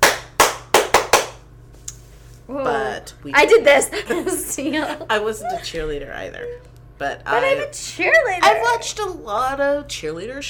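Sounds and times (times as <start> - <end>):
hand clapping: 0.0 - 2.0
speech: 2.5 - 10.4
laughter: 3.5 - 5.8.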